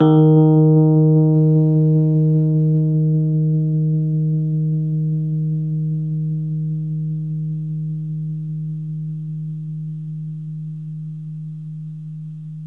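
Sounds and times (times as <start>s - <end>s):
Rhodes 73 electric piano playing D sharp: 0.0s - 8.0s.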